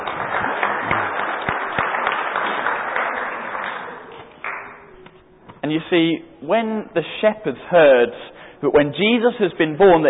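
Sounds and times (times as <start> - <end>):
audience applause: 0.0 - 4.8
speech: 5.7 - 10.0.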